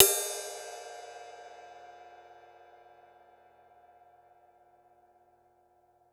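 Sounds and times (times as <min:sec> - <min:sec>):
cymbal: 0:00.0 - 0:04.2.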